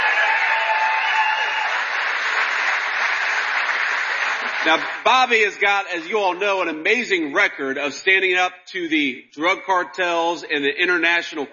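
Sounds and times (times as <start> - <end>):
audience applause: 0.0 - 5.3
speech: 4.6 - 11.5.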